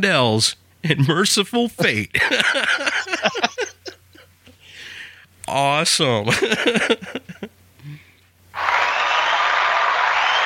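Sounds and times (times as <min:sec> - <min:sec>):
speech: 0:00.0 - 0:03.7, 0:05.5 - 0:07.3
laughter: 0:01.8 - 0:04.3, 0:06.3 - 0:07.5
live crowd cheering: 0:08.6 - 0:10.4.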